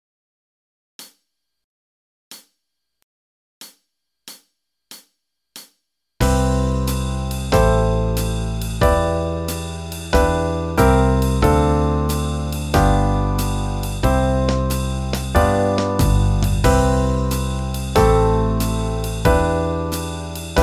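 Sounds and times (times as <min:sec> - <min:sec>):
backing track in C major at 92 bpm: 0:06.2 - 0:20.6.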